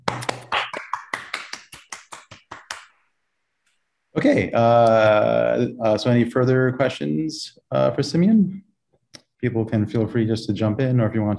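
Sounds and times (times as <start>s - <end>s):
round of applause: 0.0s - 2.9s
speech: 4.2s - 8.7s, 9.4s - 11.3s.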